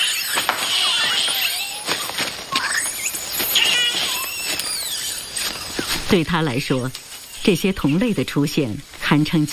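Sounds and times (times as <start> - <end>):
noisy troop of monkeys calling: 0.0 - 8.3
steady hiss: 3.2 - 9.5
speech: 6.1 - 9.5.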